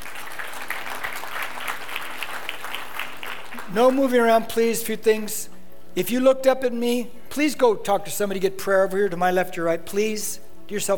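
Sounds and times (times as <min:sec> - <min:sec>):
audience applause: 0:00.0 - 0:03.7
speech: 0:03.7 - 0:10.9.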